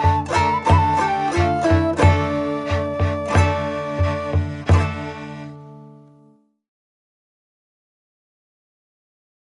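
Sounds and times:
drum: 0.0s - 5.2s
flute: 0.0s - 5.6s
tagelharpa: 0.0s - 6.5s
guitar: 0.0s - 6.6s.

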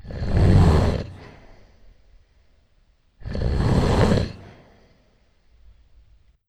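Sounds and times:
shutter snore: 0.0s - 1.7s, 3.2s - 4.9s.

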